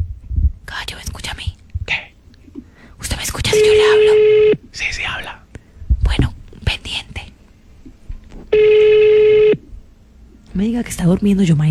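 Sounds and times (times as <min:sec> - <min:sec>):
faint noise: 0:00.0 - 0:11.6
ringback tone on an outgoing phone call: 0:03.5 - 0:04.7, 0:08.5 - 0:09.7
speech: 0:10.7 - 0:11.6.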